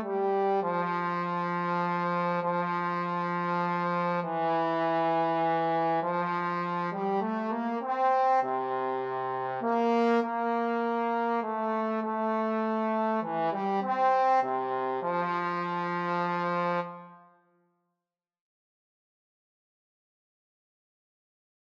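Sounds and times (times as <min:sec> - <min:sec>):
trombone trio: 0:00.0 - 0:17.1.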